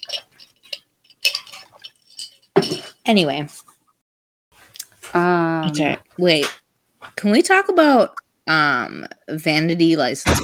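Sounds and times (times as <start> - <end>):
water sloshing in a glass: 0.0 - 3.1
speech: 3.1 - 3.6, 5.2 - 6.6, 7.2 - 10.4.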